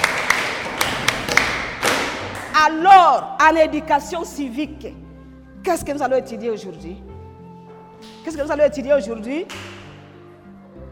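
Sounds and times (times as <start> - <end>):
clapping in a classroom: 0.0 - 2.6, 9.5 - 9.9
speech: 2.6 - 5.0, 5.6 - 7.1, 8.0 - 9.7.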